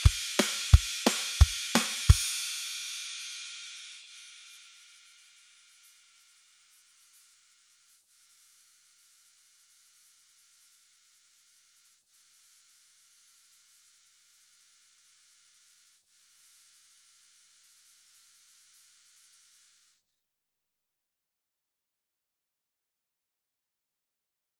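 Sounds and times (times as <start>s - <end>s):
drums: 0.0s - 6.2s.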